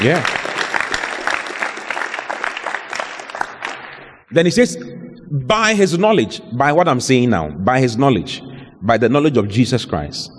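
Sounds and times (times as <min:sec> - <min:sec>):
speech: 0:00.0 - 0:00.4, 0:04.3 - 0:10.3
audience applause: 0:00.0 - 0:04.1.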